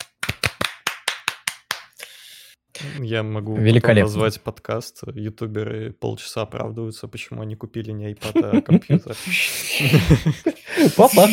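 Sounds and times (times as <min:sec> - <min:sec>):
hand clapping: 0:00.0 - 0:02.1
speech: 0:02.8 - 0:11.3
laughter: 0:08.2 - 0:11.3.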